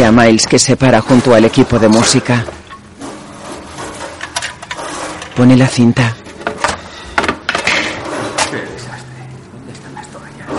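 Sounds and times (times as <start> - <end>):
speech: 0.1 - 2.6, 5.4 - 6.2
rummaging through wooden drawers: 0.8 - 8.7
wooden knocks and clatters: 1.1 - 5.6, 6.2 - 8.5.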